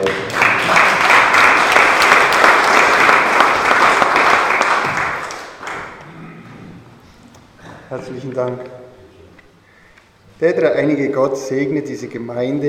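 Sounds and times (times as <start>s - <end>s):
audience applause: 0.0s - 6.0s
speech: 8.2s - 8.8s, 10.4s - 12.6s.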